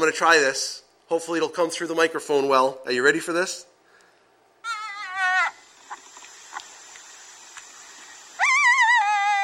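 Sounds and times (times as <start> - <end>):
speech: 0.0 - 3.7
recording of a jackal howling: 4.6 - 5.6, 8.4 - 9.4.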